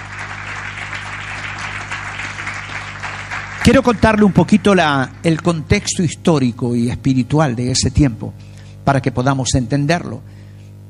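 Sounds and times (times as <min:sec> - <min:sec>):
audience applause: 0:00.0 - 0:05.5
speech: 0:03.7 - 0:10.4.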